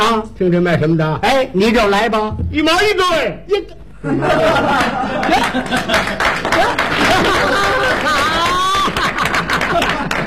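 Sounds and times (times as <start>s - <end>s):
speech: 0.1s - 8.6s
chuckles and laughter: 4.0s - 10.2s
audience clapping at a crosstalk comedy show: 4.8s - 10.2s.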